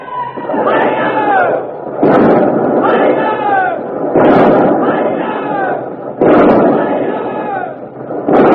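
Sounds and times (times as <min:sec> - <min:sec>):
voices shouting and crying out: 0:00.0 - 0:01.7, 0:02.8 - 0:03.9, 0:04.8 - 0:07.8
ship's cannon broadside blasts: 0:00.0 - 0:08.5.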